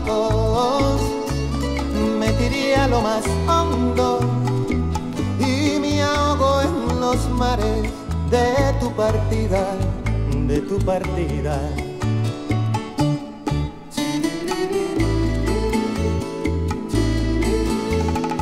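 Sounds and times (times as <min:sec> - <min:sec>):
Puerto Rican, Colombian and Latin American folkloric music: 0:00.0 - 0:18.4.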